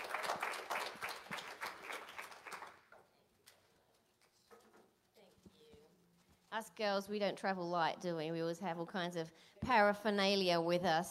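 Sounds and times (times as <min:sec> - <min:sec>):
crowd applause: 0:00.0 - 0:02.8
speech: 0:06.5 - 0:11.1.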